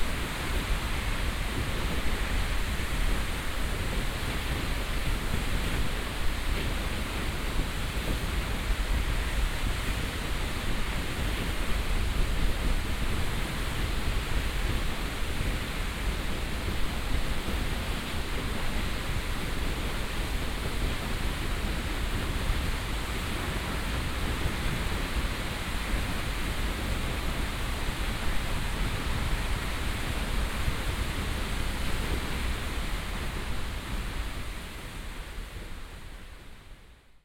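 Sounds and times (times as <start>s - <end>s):
Seljalandsfoss waterfall: 0.0s - 37.2s.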